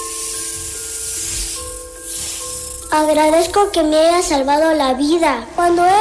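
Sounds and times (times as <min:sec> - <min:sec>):
snakes hissing: 0:00.0 - 0:03.8
speech: 0:02.9 - 0:05.9.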